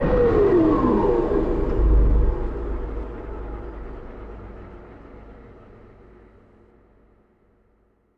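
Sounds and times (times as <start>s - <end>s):
atmospheric visual effects sounds: 0.0s - 6.1s.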